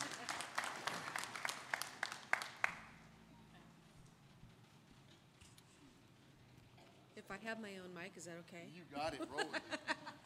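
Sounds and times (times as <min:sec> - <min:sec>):
audience clapping: 0:00.0 - 0:03.0
speech: 0:07.2 - 0:10.2.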